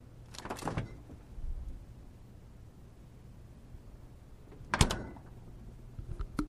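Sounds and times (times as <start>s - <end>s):
fridge door opening: 0.3s - 1.2s, 4.5s - 5.3s.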